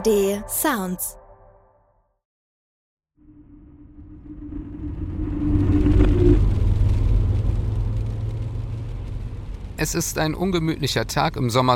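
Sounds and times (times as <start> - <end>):
speech: 0.0 - 1.2, 9.8 - 11.7
car engine droning while driving: 3.2 - 11.7
rain on windscreen: 4.8 - 11.7.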